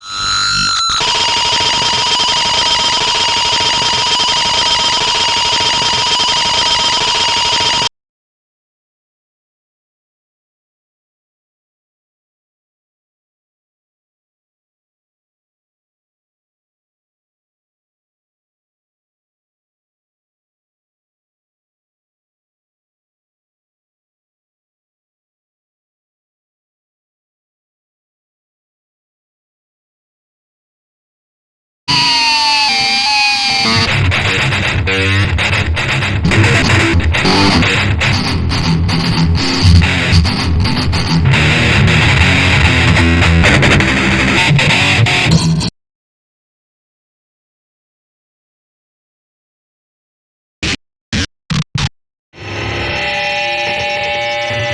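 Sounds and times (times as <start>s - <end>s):
guitars: 0.0s - 7.9s, 31.9s - 45.7s, 52.4s - 54.7s.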